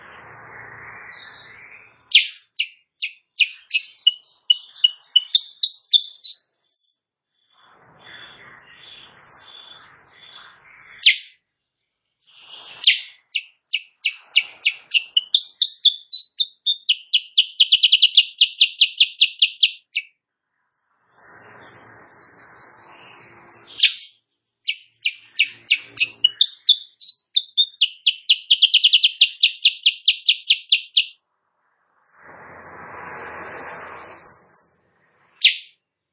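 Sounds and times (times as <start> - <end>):
rushing noise: 0.0 - 2.1, 31.8 - 35.4
sooty-headed bulbul song: 0.0 - 7.0, 8.0 - 11.4, 12.3 - 20.2, 21.1 - 31.2, 32.0 - 35.8.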